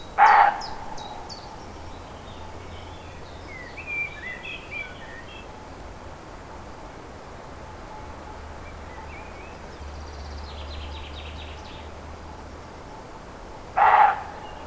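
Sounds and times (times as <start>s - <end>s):
roe deer barking: 0.2s - 0.8s, 13.8s - 14.6s.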